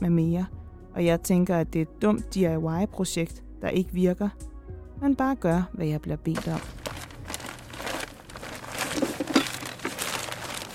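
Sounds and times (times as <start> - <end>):
speech: 0.0 - 6.8
plastic bag of sand being handled, crinkling: 6.4 - 10.7.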